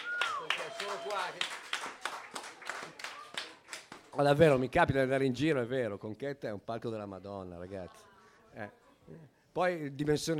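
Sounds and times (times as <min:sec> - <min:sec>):
crowd whooping and cheering: 0:00.0 - 0:01.4
audience clapping: 0:00.0 - 0:04.5
speech: 0:00.8 - 0:02.4, 0:04.2 - 0:10.3.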